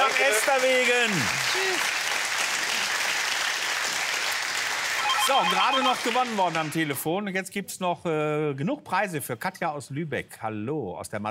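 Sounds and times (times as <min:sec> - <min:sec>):
applause: 0:00.0 - 0:07.1
speech: 0:00.2 - 0:02.0, 0:05.3 - 0:11.2.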